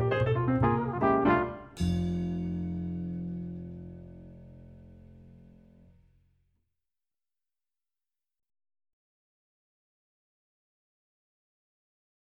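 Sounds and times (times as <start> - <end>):
jazz ensemble playing: 0.0 - 5.3.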